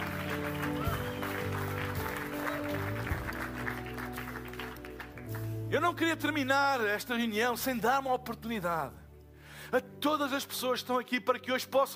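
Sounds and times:
audience applauding and cheering: 0.0 - 5.7
speech: 5.7 - 9.0, 9.7 - 11.9.

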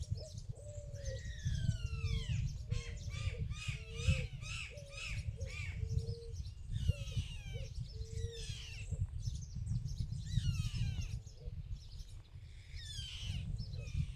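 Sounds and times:
little birds singing in the countryside: 0.0 - 14.1.

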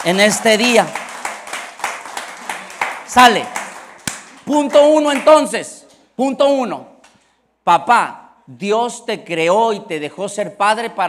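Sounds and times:
speech: 0.0 - 1.0, 3.1 - 3.6, 4.5 - 6.9, 7.7 - 11.0
audience applauding: 0.0 - 5.5.

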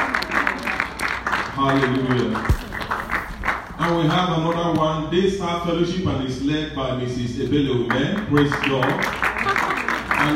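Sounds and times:
audience applause: 0.0 - 4.0, 9.0 - 10.3
speech: 1.6 - 2.7, 3.9 - 9.2.

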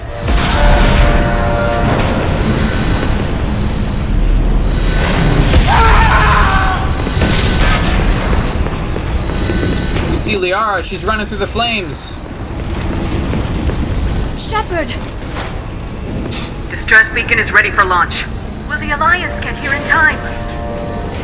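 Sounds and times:
explosions hitting a spaceship in a sci-fi video game: 0.0 - 16.2
speech: 10.5 - 12.2, 14.4 - 15.2, 16.3 - 18.3, 18.9 - 20.4.

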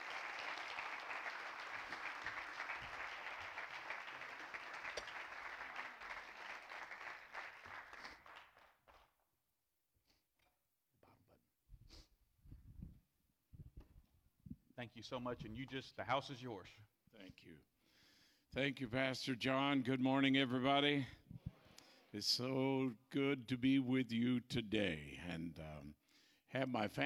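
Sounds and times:
audience applause: 0.0 - 9.0
speech: 14.8 - 17.7, 18.5 - 21.2, 22.1 - 27.0.

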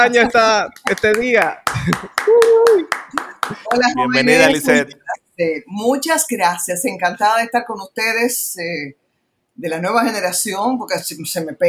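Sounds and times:
speech: 0.0 - 9.0, 9.6 - 11.6
clapping: 0.8 - 4.0
vocal cheer: 1.7 - 4.7.

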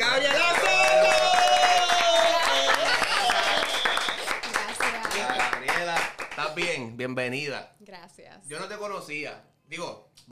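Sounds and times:
studio audience applause: 0.0 - 6.7
speech: 7.0 - 10.2.

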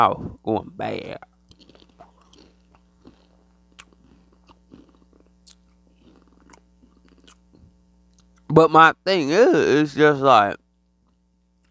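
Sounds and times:
speech: 0.0 - 1.3, 8.5 - 10.6
low steady hum: 0.0 - 11.6
crunchy chewing of a chip: 1.2 - 8.5.

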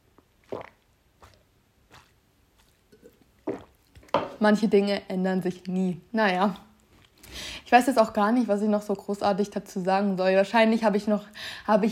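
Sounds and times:
person sipping and swallowing a drink: 0.2 - 4.1
speech: 4.4 - 6.7, 7.7 - 11.8.

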